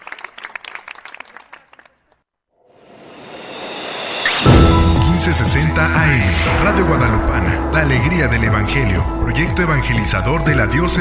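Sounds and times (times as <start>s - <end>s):
audience applause: 0.0s - 2.1s
speech: 5.2s - 10.9s.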